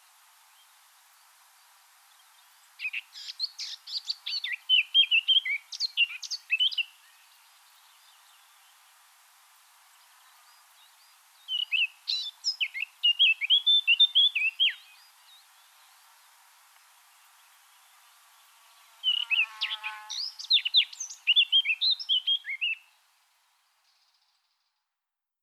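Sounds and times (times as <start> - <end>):
faint background hiss: 0.0 - 25.4
Eurasian blackcap song: 2.1 - 8.8, 10.2 - 16.2, 17.2 - 23.0.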